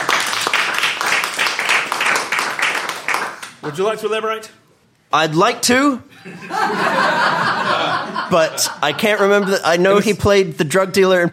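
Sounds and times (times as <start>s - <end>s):
small group round of applause: 0.0s - 3.8s
speech: 3.6s - 11.3s
laughter: 6.1s - 10.3s.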